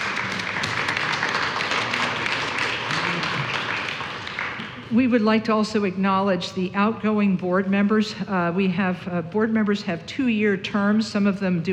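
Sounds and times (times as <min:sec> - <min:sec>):
crowd applauding: 0:00.0 - 0:04.9
speech: 0:04.9 - 0:11.7.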